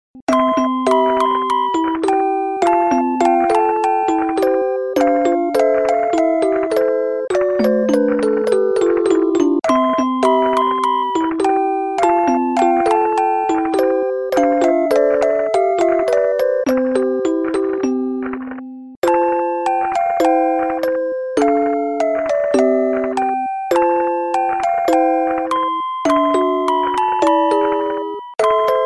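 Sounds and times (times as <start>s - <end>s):
nostalgic music box melody: 0.2s - 28.8s.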